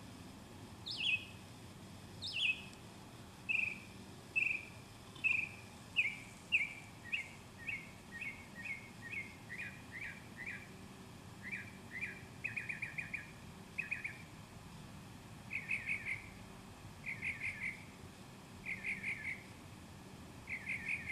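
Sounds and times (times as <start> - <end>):
birdsong: 0.8 - 1.5, 2.2 - 2.8, 3.4 - 14.4, 15.4 - 16.4, 17.0 - 18.0, 18.6 - 19.6, 20.4 - 21.1.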